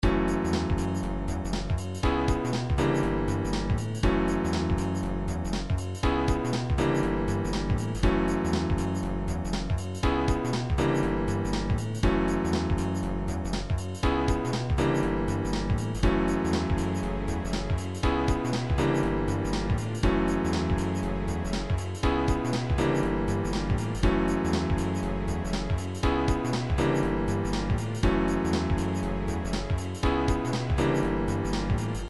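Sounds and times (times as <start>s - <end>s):
jazzy music: 0.0s - 32.0s.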